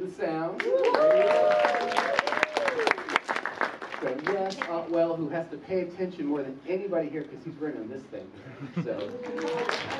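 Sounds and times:
audience clapping: 0:00.6 - 0:04.7, 0:09.0 - 0:09.9
speech: 0:05.2 - 0:09.9.

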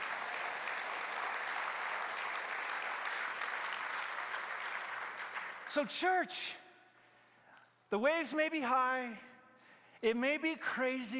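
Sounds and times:
crowd audience applauding: 0:00.0 - 0:05.9
speech: 0:05.7 - 0:06.6, 0:07.9 - 0:09.3, 0:10.0 - 0:11.1.

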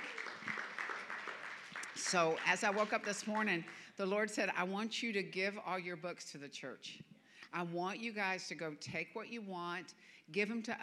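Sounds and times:
audience applause: 0:00.0 - 0:03.1
speech: 0:02.0 - 0:10.8.

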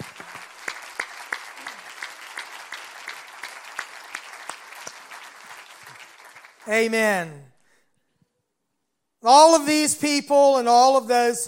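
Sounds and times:
audience applause: 0:00.0 - 0:06.8
speech: 0:06.7 - 0:07.5, 0:09.2 - 0:11.4.

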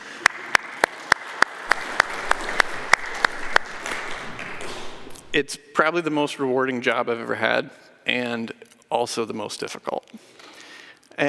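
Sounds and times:
audience applause: 0:00.0 - 0:05.5
speech: 0:05.4 - 0:10.4.

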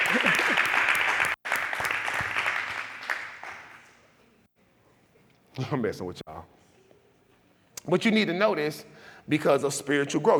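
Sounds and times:
audience applauding during a sermon: 0:00.0 - 0:03.9
speech: 0:05.6 - 0:06.3, 0:07.9 - 0:10.3.

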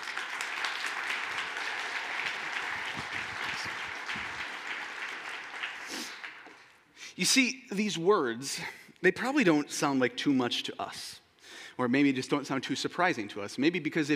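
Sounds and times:
audience applause: 0:00.0 - 0:06.7
speech: 0:07.2 - 0:11.2, 0:11.8 - 0:14.1.

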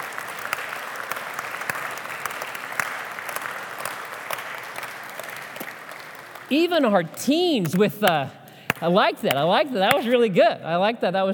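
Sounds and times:
church audience applause: 0:00.0 - 0:06.8
speech: 0:06.5 - 0:11.3.

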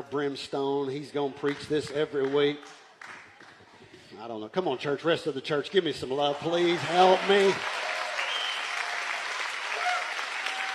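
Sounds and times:
speech: 0:00.1 - 0:03.2, 0:04.2 - 0:07.8
church audience clapping: 0:01.4 - 0:03.8, 0:06.2 - 0:10.7.

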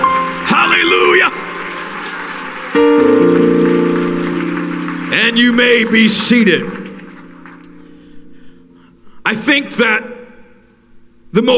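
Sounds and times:
audience clapping hands: 0:00.0 - 0:08.2
speech: 0:05.2 - 0:06.8, 0:09.3 - 0:10.1, 0:11.3 - 0:11.5.

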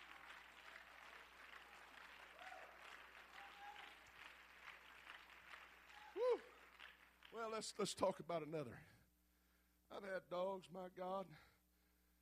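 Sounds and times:
audience clapping: 0:00.0 - 0:08.0
speech: 0:07.4 - 0:08.9, 0:10.0 - 0:11.5.

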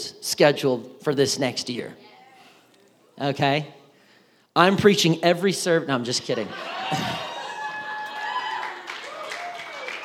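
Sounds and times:
speech: 0:00.0 - 0:02.1, 0:03.2 - 0:03.8, 0:04.6 - 0:07.3
brief polite courtesy applause from audience: 0:06.9 - 0:10.0.

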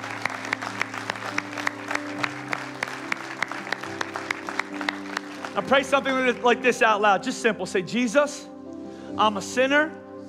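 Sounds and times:
church audience clapping: 0:00.0 - 0:06.6
soft sustained keyboard chords: 0:00.0 - 0:10.2
speech: 0:05.6 - 0:08.5, 0:09.2 - 0:10.0.

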